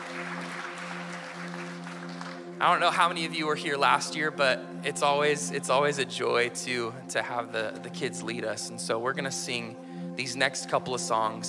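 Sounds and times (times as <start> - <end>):
audience applause for children: 0.0 - 3.0
speech: 2.6 - 11.4.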